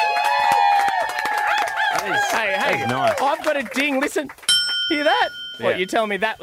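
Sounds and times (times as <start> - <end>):
sustained cheering: 0.0 - 4.2
round of applause: 0.0 - 5.2
speech: 2.0 - 6.4.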